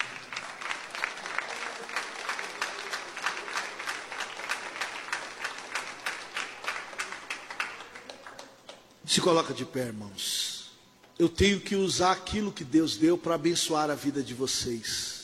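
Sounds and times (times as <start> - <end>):
audience applause: 0.0 - 8.9
speech: 9.1 - 10.4, 11.2 - 15.1.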